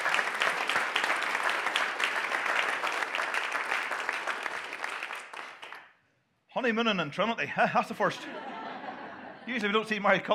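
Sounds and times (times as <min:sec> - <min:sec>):
audience applause: 0:00.0 - 0:05.8
speech: 0:06.6 - 0:08.5, 0:09.5 - 0:10.3
laughter: 0:07.5 - 0:10.3.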